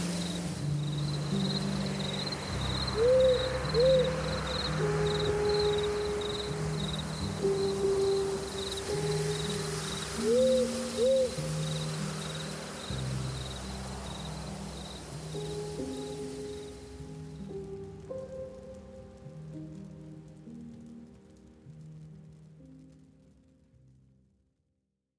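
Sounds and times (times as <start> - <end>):
autumn forest ambience: 0.0 - 19.3
autumn rain in forest: 0.0 - 24.3.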